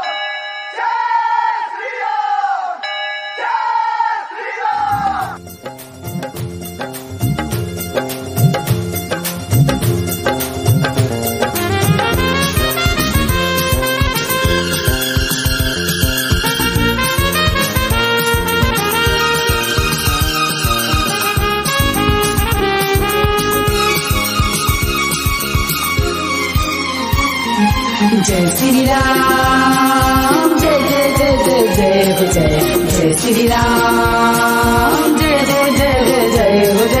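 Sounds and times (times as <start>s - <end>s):
crowd of devotees chanting the slogan: 0.8s - 5.4s
dense rhythmic devotional music: 5.0s - 36.9s.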